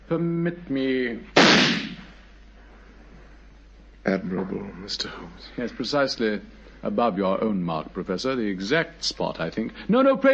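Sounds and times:
speech: 0.1s - 1.9s, 4.0s - 10.3s
pistol shot fired at a wall: 1.4s - 2.1s.

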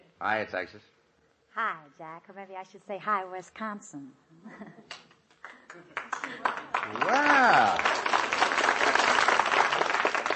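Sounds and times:
speech: 0.2s - 1.0s, 1.6s - 5.0s, 5.7s - 8.1s
audience applause on a radio show: 6.0s - 10.3s.

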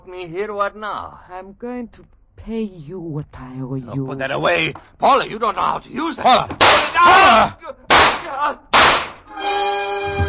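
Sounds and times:
speech: 0.0s - 8.7s
gunshots: 6.6s - 9.3s.

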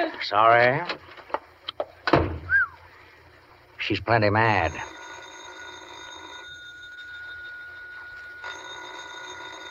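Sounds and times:
speech: 0.2s - 1.0s, 3.8s - 5.0s
telephone bell ringing: 4.5s - 9.7s.

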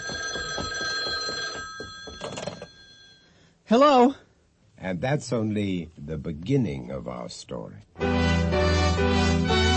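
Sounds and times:
telephone bell ringing: 0.0s - 3.4s
speech: 3.7s - 4.2s, 4.8s - 9.6s.

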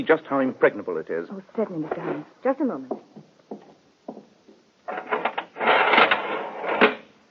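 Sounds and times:
speech: 0.0s - 3.3s
iron window shutter being lowered: 4.9s - 7.1s.

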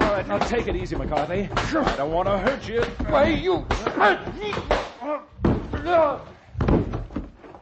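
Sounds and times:
speech: 0.2s - 5.3s, 5.8s - 6.3s
man knocked to the ground in a fistfight: 5.4s - 7.5s.

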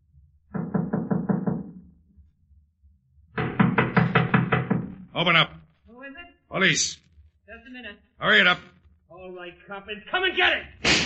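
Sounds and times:
knocking on a door: 0.5s - 2.0s, 3.3s - 5.2s
speech: 5.2s - 5.6s, 6.5s - 7.0s, 7.7s - 11.0s.

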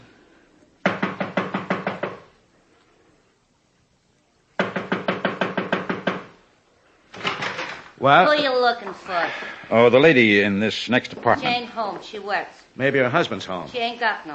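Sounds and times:
knocking on an apartment door: 0.8s - 2.3s, 4.6s - 6.4s
speech: 8.0s - 14.3s.

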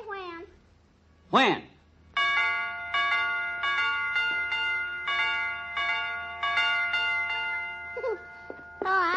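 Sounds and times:
speech: 1.3s - 1.7s
doorbell ringing a chime tune: 2.2s - 9.1s.

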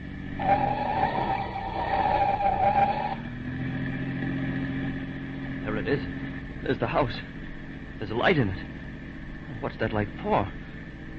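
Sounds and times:
police car engine roaring: 0.0s - 11.1s
speeding police car tires skidding on a turn: 0.3s - 3.3s
speech: 5.8s - 7.4s, 8.0s - 8.7s, 9.6s - 10.6s.

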